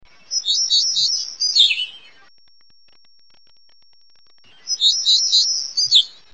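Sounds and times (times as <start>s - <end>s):
New World warbler chirping: 0.1s - 2.3s, 4.4s - 6.3s.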